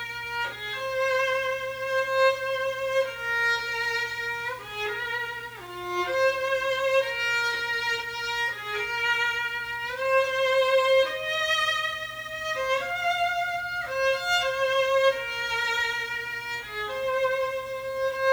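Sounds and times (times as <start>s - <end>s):
solo violin: 0.0s - 18.3s.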